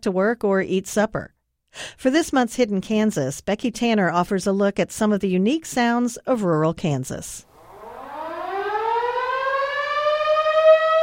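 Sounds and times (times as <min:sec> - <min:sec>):
speech: 0:00.0 - 0:07.5
town whistle siren in St. John, Kansas: 0:07.5 - 0:11.0.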